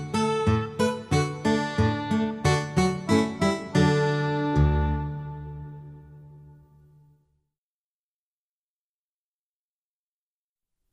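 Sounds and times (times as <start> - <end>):
music: 0.0 - 7.6.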